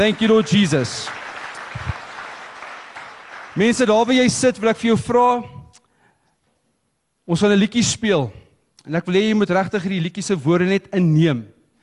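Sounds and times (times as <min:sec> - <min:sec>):
speech: 0:00.0 - 0:01.9, 0:03.6 - 0:05.6, 0:07.3 - 0:11.6
audience clapping: 0:00.0 - 0:04.3.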